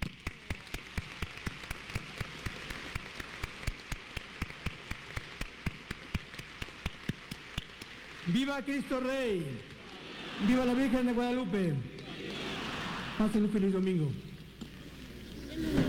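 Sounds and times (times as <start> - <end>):
audience applause: 0.0 - 13.6
speech: 8.3 - 9.7, 10.4 - 11.9, 13.2 - 14.3
laughter: 9.8 - 13.6.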